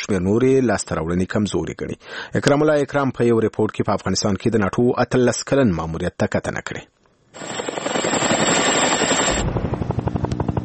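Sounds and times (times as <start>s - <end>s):
speech: 0.1s - 7.6s
NATO helicopter whining roar over Afghanistan: 7.4s - 10.6s.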